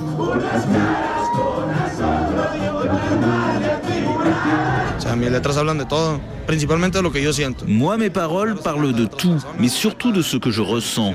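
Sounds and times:
packed concert crowd singing along: 0.0s - 5.4s
speech: 0.2s - 2.1s, 4.5s - 11.1s.

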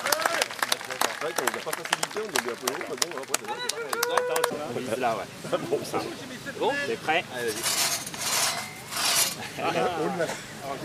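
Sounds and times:
crowd applauding: 0.0s - 4.6s
speech: 1.3s - 7.9s, 9.4s - 10.8s.

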